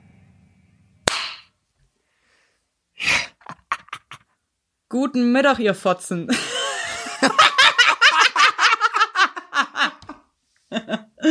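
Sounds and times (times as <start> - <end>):
single hand clap: 1.1 - 1.5
laughter: 3.4 - 4.3, 6.3 - 11.2
speech: 4.9 - 6.6.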